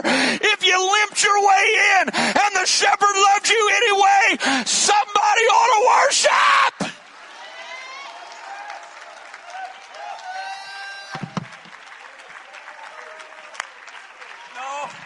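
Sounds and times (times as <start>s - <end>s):
cheers and shouting voices: 0.7s - 15.0s
speech: 1.2s - 3.8s
audience clapping: 6.8s - 15.0s.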